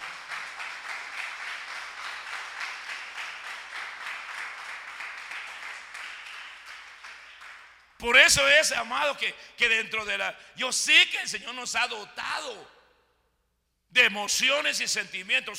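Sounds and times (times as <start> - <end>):
audience applause: 0.0 - 7.8
speech: 8.0 - 12.8, 14.0 - 15.5.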